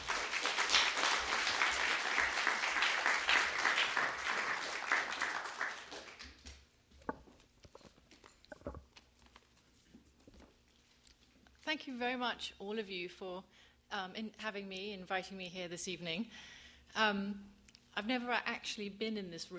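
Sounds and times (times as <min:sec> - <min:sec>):
audience applause welcoming an author at an evening event: 0:00.0 - 0:06.5
speech: 0:11.7 - 0:19.5.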